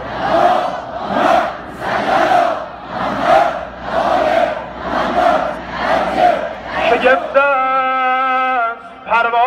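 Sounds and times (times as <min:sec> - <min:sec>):
crowd loudly chanting salawat: 0:00.0 - 0:09.3.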